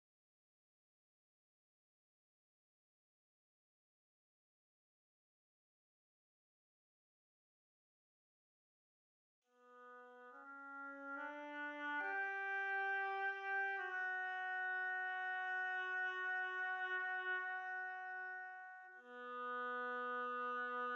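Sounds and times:
oboe: 9.6s - 20.9s.

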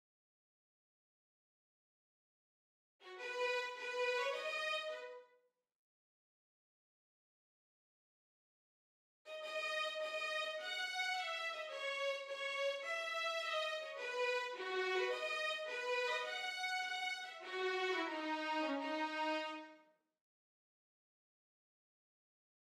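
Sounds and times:
violins: 3.0s - 5.2s, 9.3s - 19.8s.

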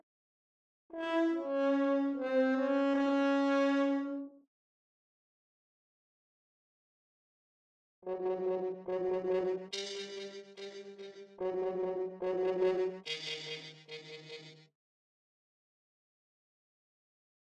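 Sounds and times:
horn: 0.9s - 4.4s, 8.0s - 14.6s.

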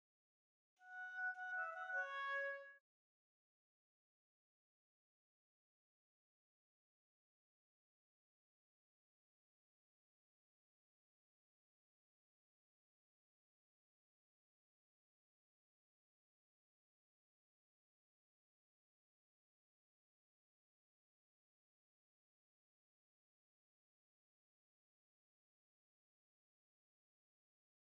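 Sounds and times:
oboe: 0.8s - 2.8s.

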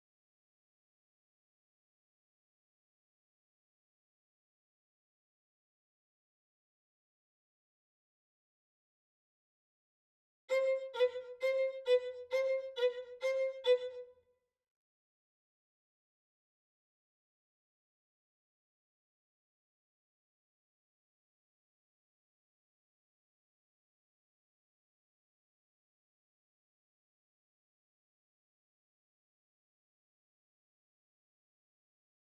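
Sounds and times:
violin: 10.5s - 14.2s.

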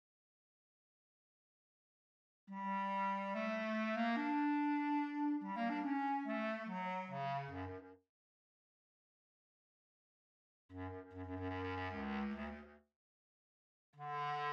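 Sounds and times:
bass clarinet: 2.5s - 8.0s, 10.7s - 12.8s, 14.0s - 14.5s.

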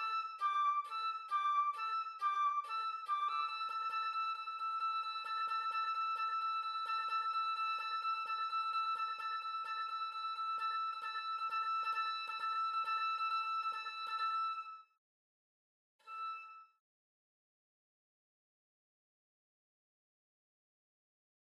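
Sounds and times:
flute: 0.0s - 15.0s, 16.0s - 16.8s.

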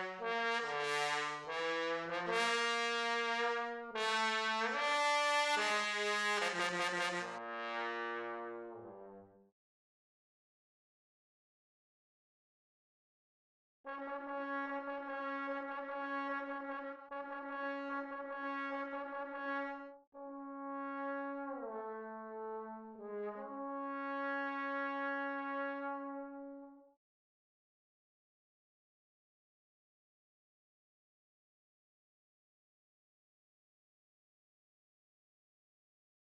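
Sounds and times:
trombone: 0.0s - 9.4s, 13.9s - 26.8s.

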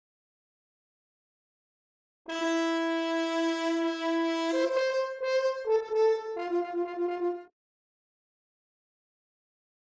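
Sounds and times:
horn: 2.3s - 7.5s.

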